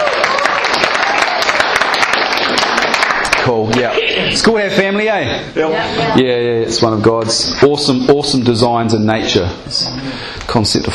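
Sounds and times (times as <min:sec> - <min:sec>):
audience applause: 0:00.0 - 0:04.0
speech: 0:03.5 - 0:10.9.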